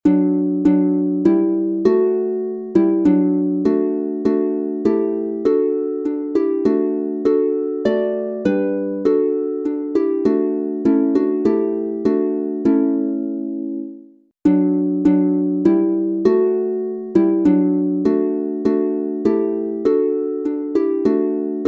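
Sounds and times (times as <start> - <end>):
harp playing in F major and D major: 0.0 - 21.6.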